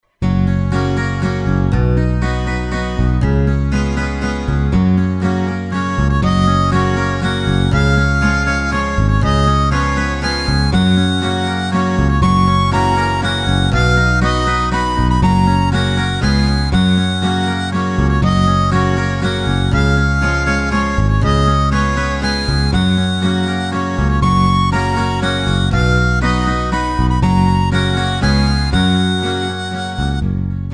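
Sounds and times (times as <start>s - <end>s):
birthday song in G flat: 0.6s - 30.7s.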